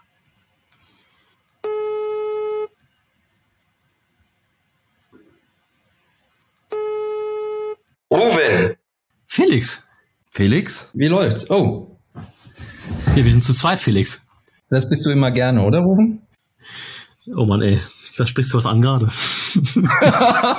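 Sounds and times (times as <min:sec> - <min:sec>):
buzzy telephone ringing tones: 0:01.6 - 0:02.7, 0:06.7 - 0:07.8
speech: 0:08.2 - 0:08.4, 0:09.5 - 0:12.3, 0:13.2 - 0:20.5
laughter: 0:19.6 - 0:20.5.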